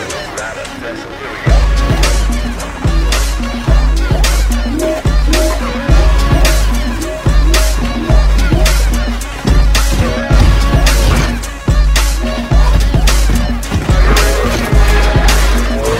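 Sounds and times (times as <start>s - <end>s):
dance beat: 1.5s - 15.9s.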